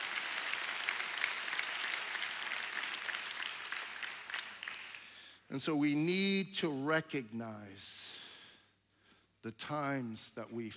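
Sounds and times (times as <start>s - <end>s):
audience applauding: 0.0s - 5.2s
speech: 5.5s - 8.2s, 9.4s - 10.7s.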